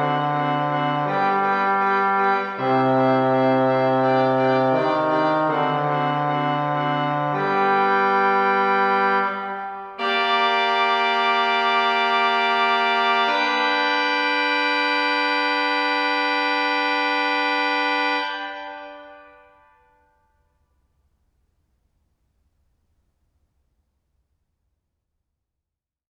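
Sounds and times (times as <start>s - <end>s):
organ fanfare: 0.0s - 19.7s.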